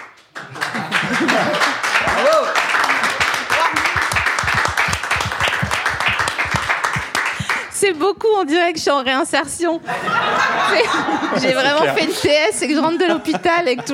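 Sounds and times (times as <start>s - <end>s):
audience applauding: 0.0s - 7.8s
laughter: 0.4s - 4.2s, 9.8s - 13.9s
speech: 7.9s - 13.9s.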